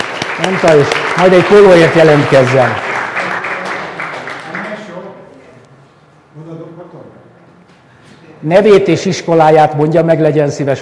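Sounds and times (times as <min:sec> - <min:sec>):
audience applauding: 0:00.0 - 0:05.1
speech: 0:00.4 - 0:02.8, 0:08.4 - 0:10.8.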